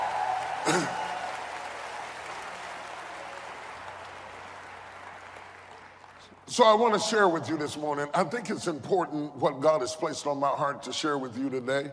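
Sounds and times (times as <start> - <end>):
audience applause: 0.0 - 6.4
speech: 0.7 - 1.0, 6.5 - 11.9.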